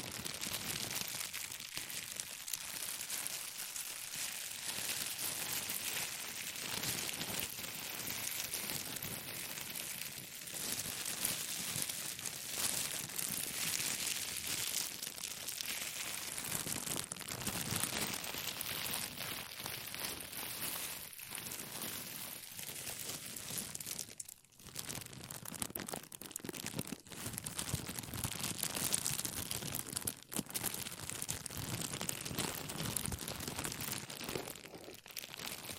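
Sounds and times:
plastic crinkling: 0.0 - 35.7.

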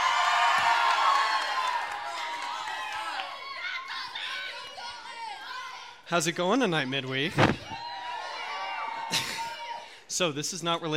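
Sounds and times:
audience cheering and whooping: 0.0 - 5.8, 7.4 - 9.8
speech: 6.1 - 7.8, 10.2 - 10.9.

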